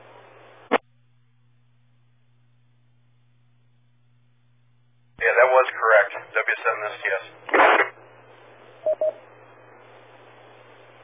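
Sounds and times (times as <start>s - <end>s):
radio static burst: 6.4s - 8.0s
speech: 6.5s - 7.6s
ham radio repeater courtesy tone beeps: 8.8s - 9.2s.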